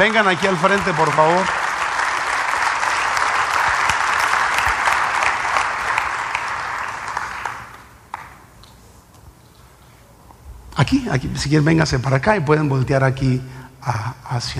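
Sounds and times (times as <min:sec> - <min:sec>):
speech: 0:00.0 - 0:01.6, 0:10.8 - 0:14.5
audience applause: 0:00.0 - 0:08.4.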